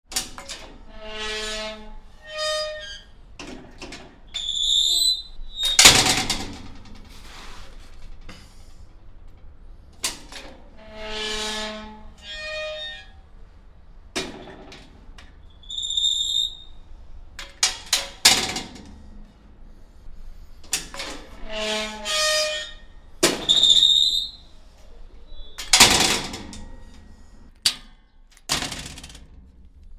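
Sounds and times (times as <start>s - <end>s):
metal house gate squeaking, opening and closing: 0.2s - 3.7s, 4.3s - 7.2s, 10.3s - 13.4s, 15.3s - 19.0s, 20.7s - 29.0s.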